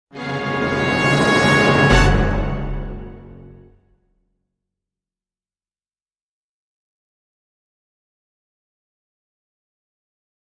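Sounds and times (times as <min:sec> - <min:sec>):
fanfare: 0:00.1 - 0:04.1.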